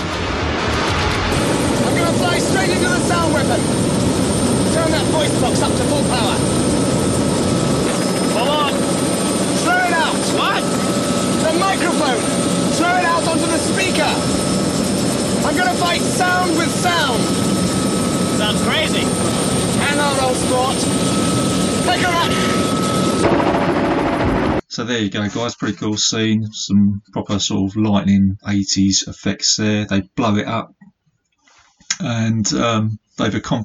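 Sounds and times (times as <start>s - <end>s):
helicopter in film scene: 0.0s - 24.6s
speech: 18.5s - 23.5s, 24.8s - 30.8s, 32.0s - 33.6s.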